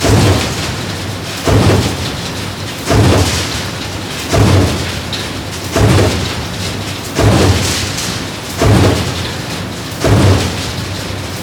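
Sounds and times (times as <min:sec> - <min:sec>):
industrial ambience: 0:00.0 - 0:11.4.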